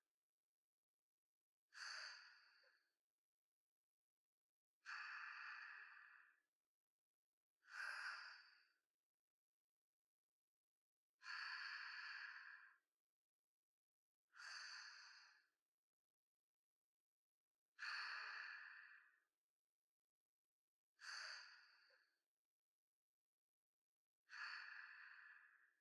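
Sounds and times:
sleep breathing ASMR: 1.8s - 2.8s, 4.9s - 6.4s, 7.7s - 8.8s, 11.2s - 12.8s, 14.4s - 15.5s, 17.8s - 19.2s, 21.0s - 22.1s, 24.3s - 25.8s.

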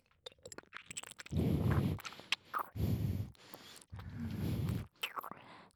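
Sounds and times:
deep kissing ASMR: 0.9s - 5.3s.

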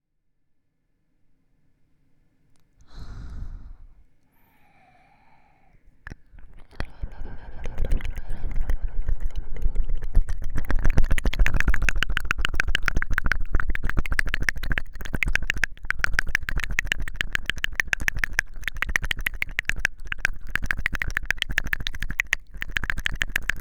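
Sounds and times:
strong ear licking on the right side: 6.1s - 23.5s.

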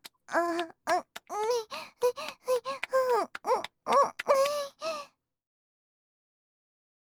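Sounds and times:
person moaning: 0.3s - 5.0s.

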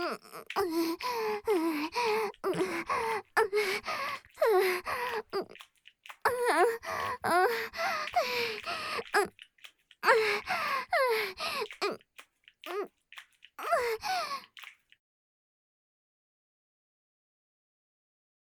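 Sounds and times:
person panting: 0.0s - 5.6s, 6.3s - 9.3s, 10.0s - 11.9s, 13.6s - 14.6s.

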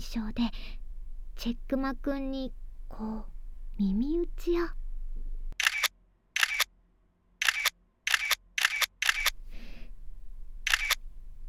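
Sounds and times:
speech: 0.1s - 0.8s, 1.4s - 4.8s
camera shutter clicks: 5.6s - 6.7s, 7.4s - 9.4s, 10.7s - 11.0s.

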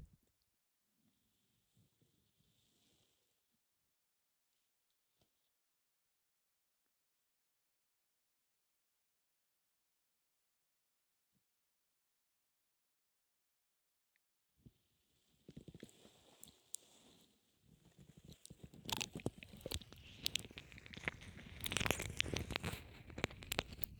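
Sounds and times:
ear licking in right ear: 18.4s - 23.9s.

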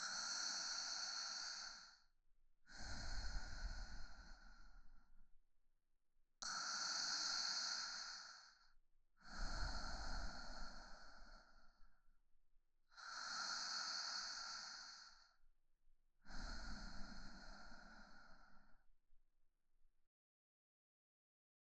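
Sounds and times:
woman breathing calmly in sleep beside her boyfriend: 0.0s - 2.1s, 2.7s - 5.2s, 6.4s - 12.1s, 12.9s - 15.5s, 16.2s - 19.0s.

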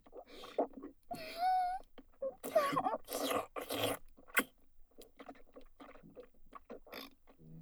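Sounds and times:
wet sucking sounds for ASMR: 0.4s - 4.5s.

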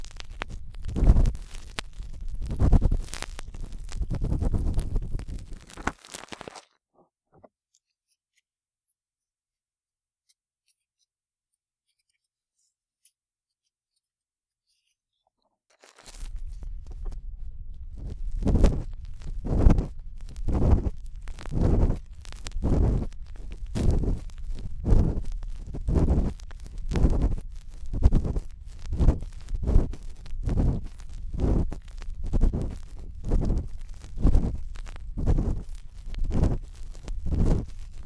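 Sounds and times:
ear pick scraping deep in the ear: 0.0s - 6.0s, 16.1s - 38.0s.

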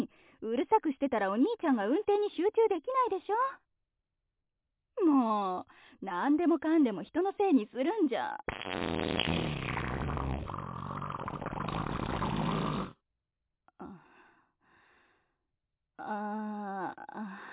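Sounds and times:
speech: 0.0s - 3.7s, 5.0s - 9.5s, 16.0s - 17.5s
fart: 8.5s - 13.0s.

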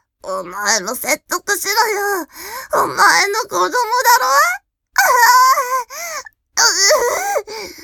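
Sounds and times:
speech: 0.4s - 7.8s
woman crying while straining in labor: 5.0s - 5.9s.

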